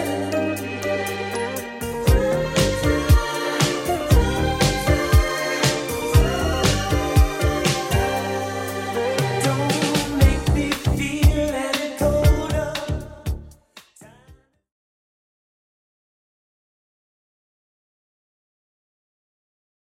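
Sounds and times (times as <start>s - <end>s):
80s style music beat at 118 bpm: 0.0s - 14.4s.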